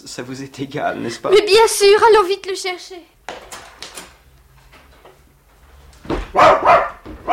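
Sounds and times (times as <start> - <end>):
speech: 0.1 - 3.2, 6.4 - 6.9
dog barking: 6.3 - 7.3.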